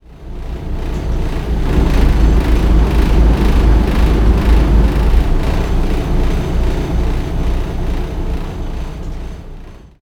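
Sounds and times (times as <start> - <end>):
ambient battle music: 1.2 - 8.7.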